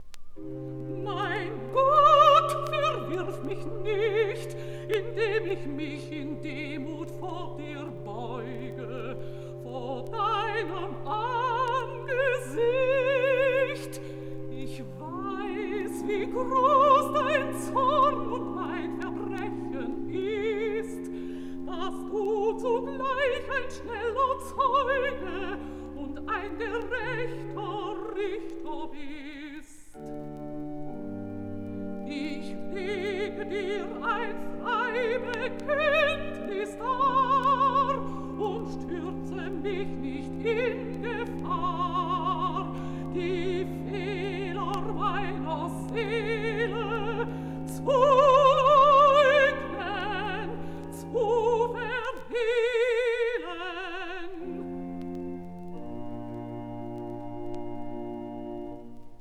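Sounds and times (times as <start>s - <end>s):
recitative singing: 0.0s - 59.1s.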